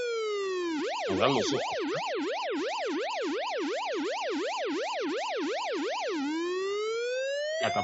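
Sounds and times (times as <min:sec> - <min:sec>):
siren-like exclusive news jingle: 0:00.0 - 0:07.8
speech: 0:01.1 - 0:03.7, 0:07.6 - 0:07.8.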